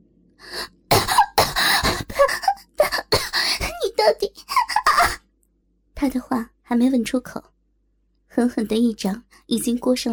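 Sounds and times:
hard coughing: 0.9 - 3.8, 4.4 - 5.2
speech: 6.8 - 7.5, 8.4 - 10.1.

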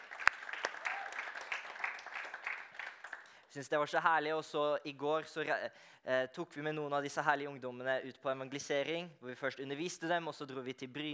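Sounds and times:
crowd audience applause: 0.0 - 3.4
speech: 3.6 - 11.1.

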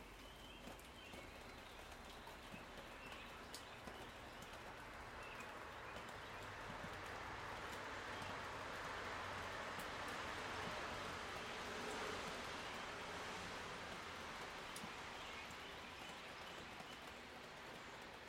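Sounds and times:
rain drops falling from the roof: 0.0 - 18.2
car passing: 6.6 - 16.0.

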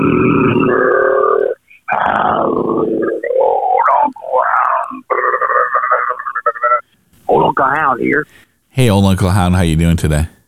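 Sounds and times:
man imitating a growl: 0.0 - 6.7
speech: 8.0 - 10.4.

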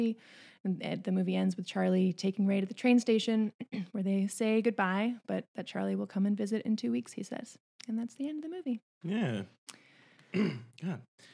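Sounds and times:
speech: 0.0 - 11.3
coughing: 10.4 - 11.1.

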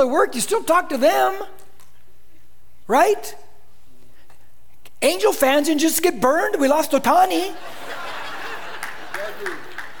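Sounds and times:
speech: 0.0 - 1.6, 2.9 - 3.5, 5.0 - 8.1, 9.3 - 9.7
laughter: 7.5 - 9.9
Dodger fans clapping: 8.4 - 9.9.

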